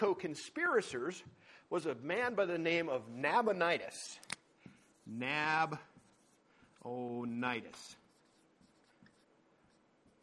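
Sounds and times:
speech: 0.0s - 4.4s, 5.1s - 5.9s, 6.8s - 8.0s
pen or pencil writing by hand: 5.9s - 6.5s, 7.8s - 10.2s.

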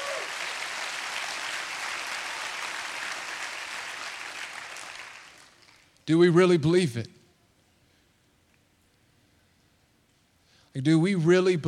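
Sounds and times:
audience clapping: 0.0s - 6.0s
speech: 6.1s - 7.2s, 10.8s - 11.6s.

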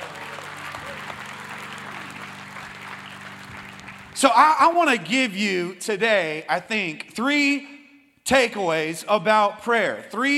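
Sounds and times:
audience applause: 0.0s - 4.8s
speech: 4.2s - 7.7s, 8.3s - 10.3s.

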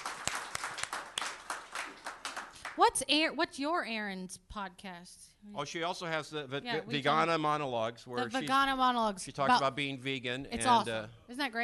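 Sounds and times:
audience applause: 0.0s - 2.8s
speech: 2.8s - 11.6s.

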